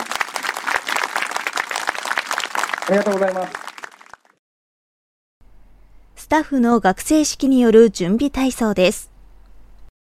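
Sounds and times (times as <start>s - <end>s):
audience applause at a canoe touring festival opening ceremony on the Teshio River in Hokkaido: 0.0s - 4.4s
speech: 2.9s - 3.6s, 6.3s - 9.1s.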